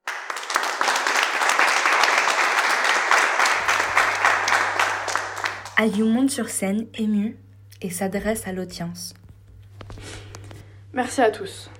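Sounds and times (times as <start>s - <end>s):
audience applauding loudly: 0.0s - 6.0s
speech: 5.8s - 9.2s, 11.0s - 11.7s.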